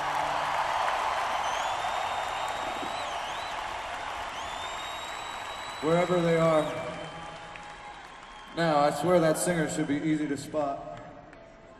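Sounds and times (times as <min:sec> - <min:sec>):
audience applause: 0:00.0 - 0:09.5
high whistles: 0:01.3 - 0:07.2
speech: 0:05.8 - 0:07.0, 0:08.6 - 0:10.9.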